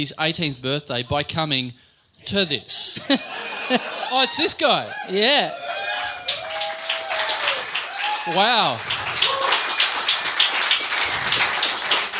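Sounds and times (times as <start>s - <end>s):
speech: 0.0s - 5.6s, 8.2s - 8.9s
laughter: 3.0s - 5.2s
thin scattered sarcastic audience clapping: 5.5s - 12.1s.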